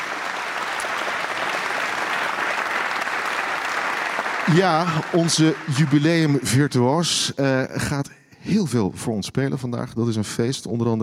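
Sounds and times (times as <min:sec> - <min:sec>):
audience applause: 0:00.0 - 0:07.2
speech: 0:04.5 - 0:11.0.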